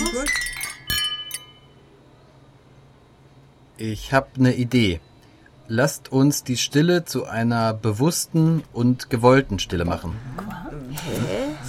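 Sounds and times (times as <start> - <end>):
glasses clinking in a toast: 0.0 - 1.8
speech: 3.8 - 5.1, 5.7 - 11.4.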